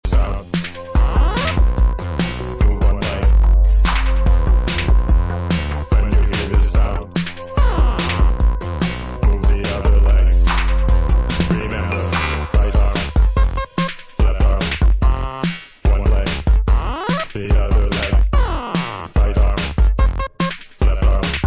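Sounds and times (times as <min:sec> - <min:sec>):
vocal imitation of robot movements: 0:00.0 - 0:21.4.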